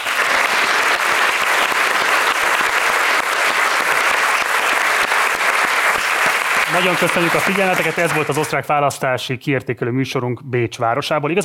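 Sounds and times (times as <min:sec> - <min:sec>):
audience applause: 0:00.0 - 0:08.7
speech: 0:06.8 - 0:11.4.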